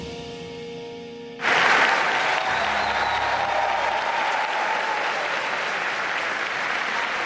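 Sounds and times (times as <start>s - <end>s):
journalists giving Pope Leo XIV a standing ovation: 1.4s - 7.2s.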